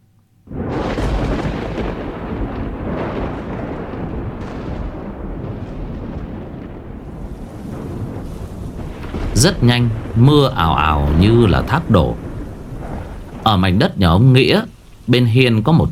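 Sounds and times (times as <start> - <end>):
thunderclap from a lightning strike near An Quý village: 0.5 - 15.9
speech: 9.4 - 12.2, 13.5 - 15.9.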